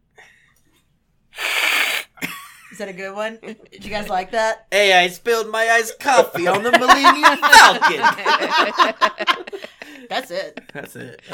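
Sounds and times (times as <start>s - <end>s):
person imitating a cat's hiss: 1.3s - 2.2s
speech: 2.8s - 11.3s
laughter: 6.2s - 11.3s.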